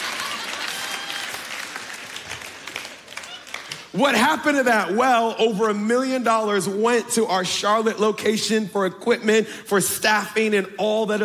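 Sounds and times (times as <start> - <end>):
audience clapping softly: 0.0 - 4.0
speech: 4.0 - 11.2.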